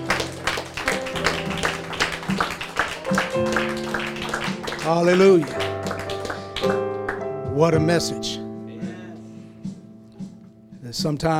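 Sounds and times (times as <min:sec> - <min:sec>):
audience clapping hands in praise: 0:00.0 - 0:07.4
sustained keyboard chords: 0:00.0 - 0:11.3
speech: 0:04.9 - 0:05.6, 0:07.6 - 0:08.4, 0:11.0 - 0:11.3.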